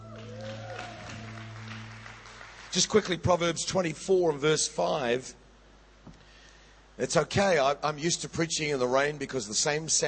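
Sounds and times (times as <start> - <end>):
audience applause: 0.0 - 3.2
speech: 2.8 - 5.4, 7.0 - 10.0.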